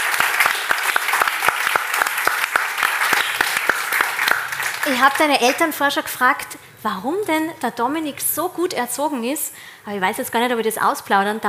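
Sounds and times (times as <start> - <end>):
audience applause: 0.0 - 5.6
speech: 4.9 - 11.4.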